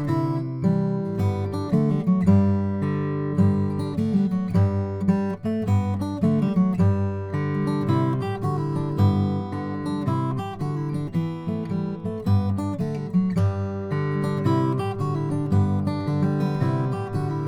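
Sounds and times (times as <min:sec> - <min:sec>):
acoustic guitar with German spruce top playing: 0:00.0 - 0:17.4.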